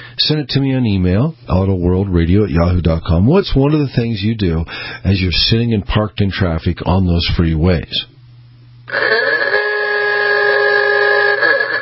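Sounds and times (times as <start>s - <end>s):
speech: 0.2s - 8.1s, 8.9s - 9.4s
ooga horn honk: 8.9s - 11.7s.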